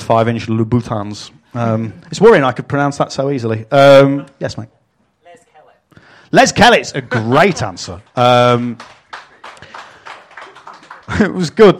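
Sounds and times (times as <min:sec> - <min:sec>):
speech: 0:00.1 - 0:04.8, 0:06.3 - 0:09.0, 0:11.1 - 0:11.7
live audience clapping: 0:07.2 - 0:11.7.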